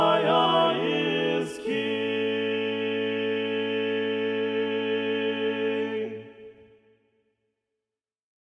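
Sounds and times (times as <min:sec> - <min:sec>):
SATB four-part choir singing: 0:00.0 - 0:06.7.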